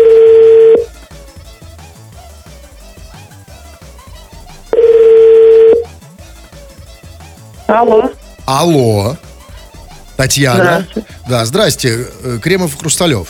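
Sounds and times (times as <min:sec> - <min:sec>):
telephone ringing tone beeps on the line: 0:00.0 - 0:00.9, 0:04.8 - 0:05.9
soft music: 0:02.8 - 0:13.2
speech: 0:07.7 - 0:09.3, 0:10.2 - 0:13.2.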